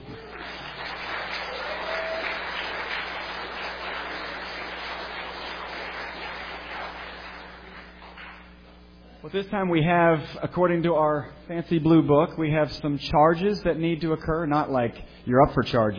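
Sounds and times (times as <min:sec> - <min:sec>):
audience applauding: 0:00.0 - 0:08.6
speech: 0:09.2 - 0:15.9.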